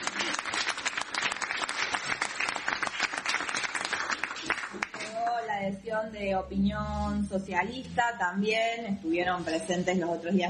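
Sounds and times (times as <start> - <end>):
loud applause: 0.0 - 5.2
speech: 5.7 - 10.4.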